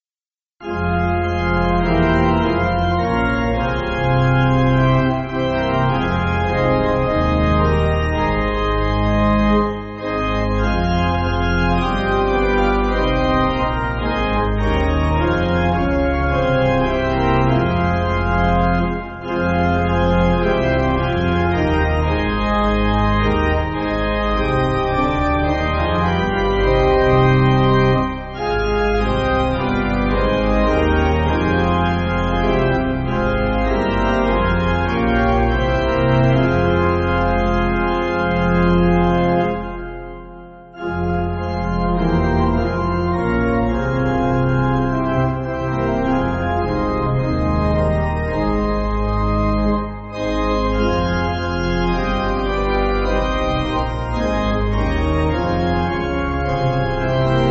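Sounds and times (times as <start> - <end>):
pipe organ: 0.6 - 57.4.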